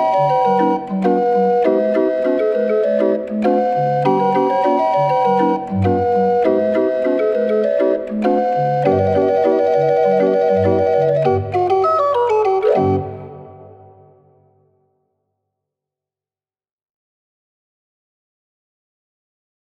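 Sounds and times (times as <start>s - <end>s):
barrel organ with 36 keys playing: 0.0s - 14.3s.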